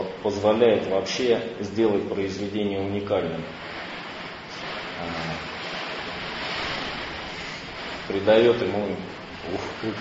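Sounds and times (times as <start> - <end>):
speech: 0.2 - 3.8, 8.1 - 9.9
storm wind roaring: 3.2 - 9.9.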